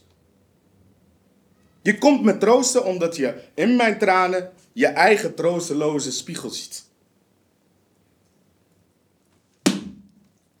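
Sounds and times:
speech: 1.8 - 6.9
hard slap in the face: 9.6 - 10.1.

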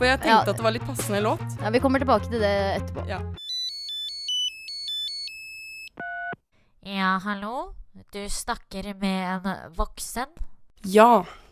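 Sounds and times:
speech: 0.0 - 3.4, 6.8 - 11.5
electronic telephone ringtone: 3.4 - 6.4.

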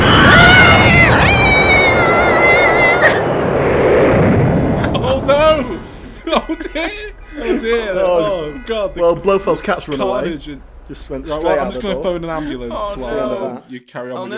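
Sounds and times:
laughter: 0.0 - 3.8, 4.6 - 13.7
gunpowder explosion crackling: 0.0 - 13.5
shrill whistling tones: 0.0 - 13.5
excited voices: 0.0 - 14.3
speech: 8.8 - 14.3.

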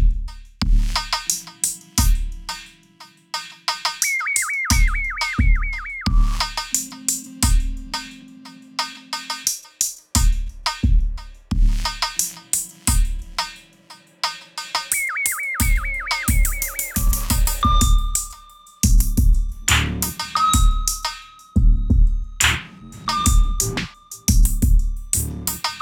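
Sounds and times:
quick hi-hat ticks: 0.1 - 25.8
electronic beeps: 4.0 - 7.0, 15.0 - 18.2.

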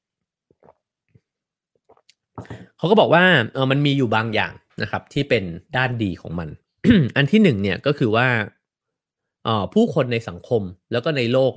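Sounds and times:
person sipping water: 0.5 - 2.7
speech: 2.8 - 8.6, 9.4 - 11.5.

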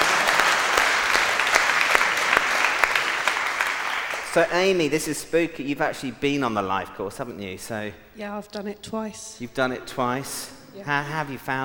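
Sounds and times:
audience clapping: 0.0 - 5.0
speech: 4.4 - 11.6.

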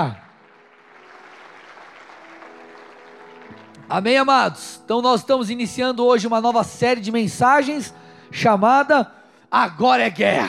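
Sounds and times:
speech: 0.0 - 0.2, 3.9 - 10.4
audience applause: 0.0 - 4.0.

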